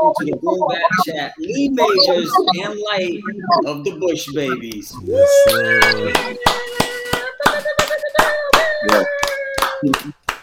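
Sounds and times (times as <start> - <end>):
speech: 0.0 - 6.7, 9.8 - 10.2
audience clapping: 5.4 - 10.4.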